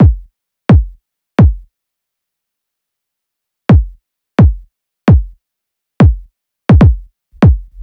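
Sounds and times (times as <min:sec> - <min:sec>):
kick drum: 0:00.0 - 0:01.7, 0:03.7 - 0:05.4, 0:06.0 - 0:07.8.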